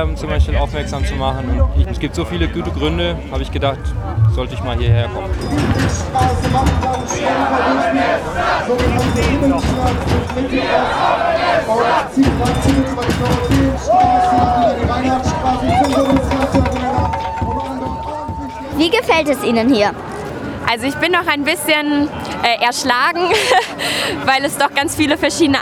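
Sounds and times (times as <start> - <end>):
speech: 0.0 - 16.8, 18.8 - 20.1, 20.7 - 25.6
street crowd of protesters murmuring and shouting: 6.8 - 19.6
laughter: 23.2 - 24.2.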